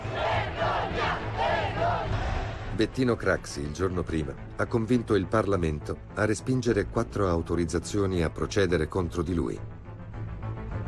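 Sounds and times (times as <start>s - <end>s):
large crowd shouting and chanting outside hotel: 0.0s - 2.7s
speech: 2.8s - 9.8s.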